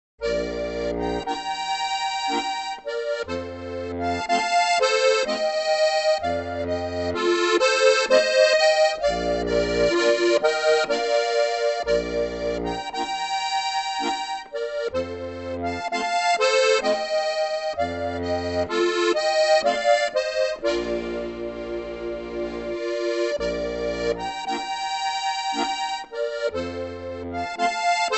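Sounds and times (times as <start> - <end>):
peasant minuet: 0.2 - 28.1.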